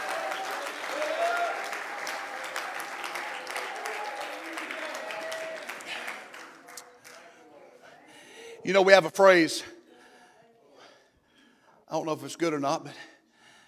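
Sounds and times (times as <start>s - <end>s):
audience clapping hands: 0.0s - 7.3s
speech: 8.7s - 9.7s, 12.0s - 13.1s.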